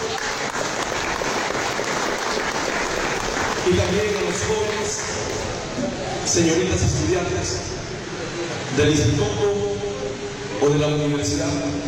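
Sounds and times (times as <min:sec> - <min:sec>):
applause: 0:00.0 - 0:05.7
speech: 0:03.7 - 0:05.1, 0:05.8 - 0:07.8, 0:08.8 - 0:09.6, 0:10.6 - 0:11.8.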